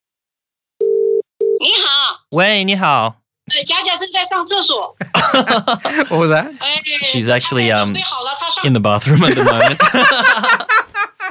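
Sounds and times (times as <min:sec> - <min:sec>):
telephone ringback tone: 0:00.8 - 0:01.6
speech: 0:02.3 - 0:10.7
laughter: 0:05.0 - 0:06.4, 0:09.0 - 0:11.2.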